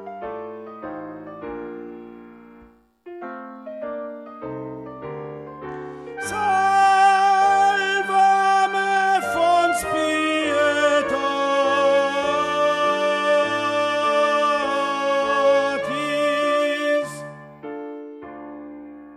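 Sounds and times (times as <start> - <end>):
sopranos singing choral music: 6.1 - 17.4.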